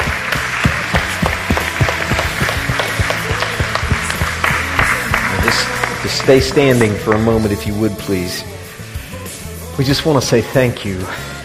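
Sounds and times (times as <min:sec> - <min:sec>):
audience applause: 0:00.0 - 0:07.4
speech: 0:06.1 - 0:08.6, 0:09.8 - 0:11.3.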